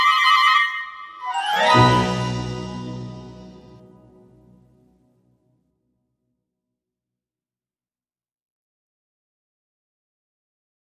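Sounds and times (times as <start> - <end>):
cartoon magic sound effect: 1.2 - 4.0.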